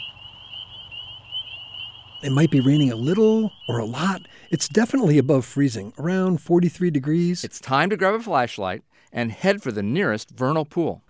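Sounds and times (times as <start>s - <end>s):
spring peeper frogs calling: 0.0s - 6.4s
speech: 2.2s - 11.0s.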